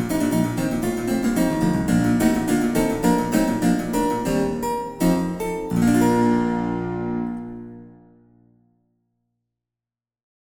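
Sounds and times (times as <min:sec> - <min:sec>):
German harpsichord fugue: 0:00.0 - 0:08.0.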